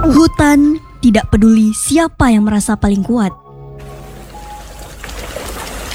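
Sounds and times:
speech: 0.1s - 3.4s
rain falling: 3.8s - 5.9s.

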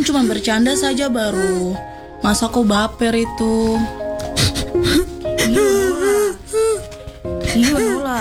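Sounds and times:
girl crying: 0.0s - 1.8s, 4.3s - 8.1s
speech: 0.0s - 5.1s, 7.6s - 8.1s.

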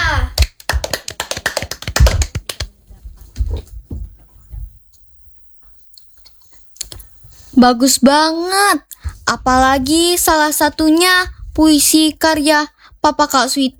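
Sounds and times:
hand clapping: 0.0s - 2.8s
speech: 7.6s - 13.7s.

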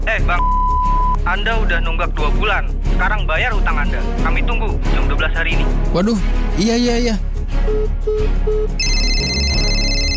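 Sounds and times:
speech: 0.2s - 0.6s, 1.3s - 9.4s
electronic mobile phone ringtone signalling an incoming call: 7.7s - 10.1s.

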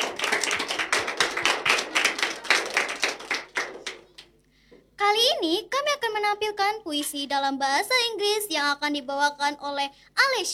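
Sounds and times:
audience clapping at a school performance event: 0.0s - 4.4s
speech: 5.4s - 10.5s.

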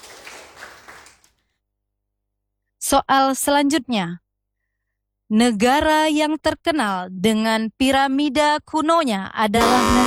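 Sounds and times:
applause for a quiz team: 0.0s - 1.4s
speech: 2.9s - 4.2s, 5.3s - 10.0s.

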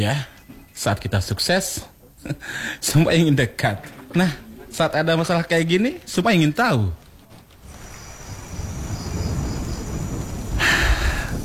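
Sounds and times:
speech: 0.0s - 7.0s
steady rain: 7.5s - 11.4s
rolling thunder: 7.6s - 11.4s.

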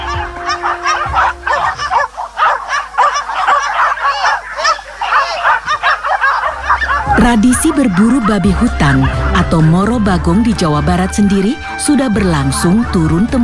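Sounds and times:
laughter: 0.0s - 4.4s, 5.1s - 13.4s
pack of hunting dogs barking continuously: 0.0s - 13.4s
speech: 7.2s - 13.4s.

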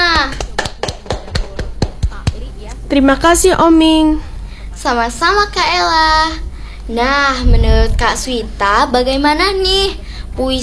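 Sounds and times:
hand claps at a poetry reading: 0.0s - 2.4s
speech: 2.9s - 10.6s.

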